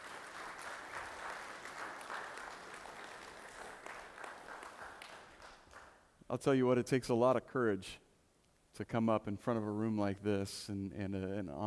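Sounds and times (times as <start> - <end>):
live audience applause at a faith gathering: 0.0 - 6.0
speech: 6.3 - 8.0, 8.8 - 11.6.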